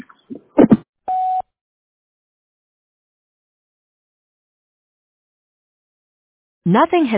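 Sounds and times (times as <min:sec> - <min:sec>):
voicemail beep tone: 0:01.1 - 0:01.4.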